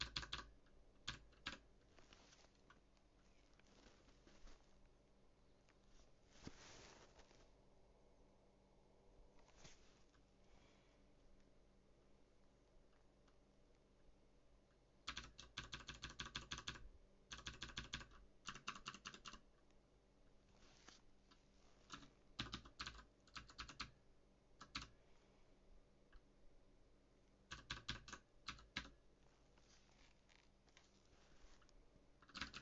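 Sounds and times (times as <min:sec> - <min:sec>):
typing on a mechanical keyboard: 0:00.0 - 0:01.7, 0:15.0 - 0:19.5, 0:21.9 - 0:24.0, 0:24.6 - 0:25.0, 0:27.5 - 0:29.0, 0:32.2 - 0:32.5
low steady hum: 0:00.0 - 0:15.6, 0:16.7 - 0:17.4, 0:19.4 - 0:32.5.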